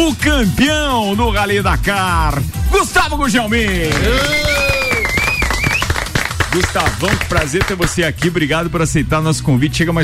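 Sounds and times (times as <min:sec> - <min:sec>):
speech: 0:00.0 - 0:04.6, 0:06.5 - 0:10.0
applause from the studio bench: 0:03.7 - 0:08.4.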